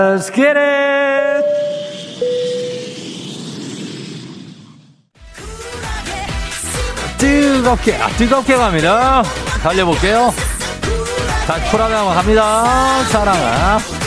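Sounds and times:
speech: 0.0s - 1.6s, 7.2s - 14.0s
airplane taking off: 1.0s - 5.1s.

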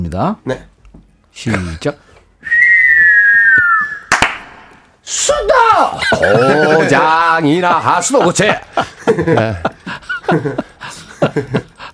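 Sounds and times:
speech: 0.0s - 0.7s, 1.4s - 2.0s, 5.1s - 10.7s, 11.4s - 11.7s
firework whistling: 2.5s - 4.5s
firework bang and crackle: 4.1s - 4.6s
laughter: 5.9s - 11.9s.

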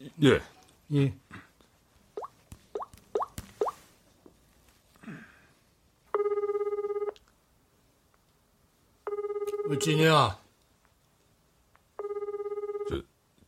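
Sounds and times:
speech: 0.2s - 1.2s, 9.7s - 10.4s, 12.9s - 13.1s
telephone ringing unanswered: 6.1s - 7.2s, 9.1s - 10.0s, 12.0s - 13.0s.

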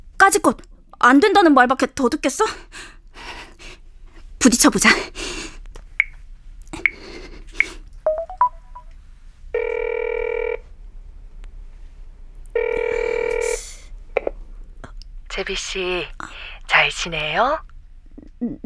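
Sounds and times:
speech: 0.3s - 2.9s, 4.5s - 5.2s, 15.7s - 16.2s, 16.9s - 17.7s, 18.4s - 18.6s
telephone keypad beeps: 8.1s - 8.9s
telephone ring tones: 8.1s - 8.9s, 9.6s - 10.7s, 12.6s - 13.6s.

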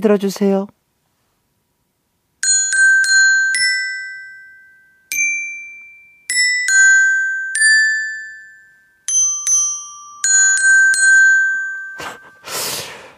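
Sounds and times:
speech: 0.0s - 0.8s
xylophone melody: 2.4s - 12.8s.

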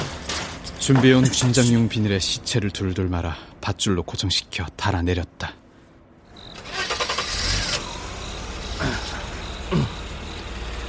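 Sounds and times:
speech: 0.8s - 5.6s
car engine starting and idling: 6.4s - 10.8s.

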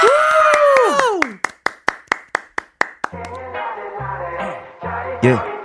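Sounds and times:
audience clapping and cheering: 0.0s - 3.4s
speech: 5.2s - 5.5s.

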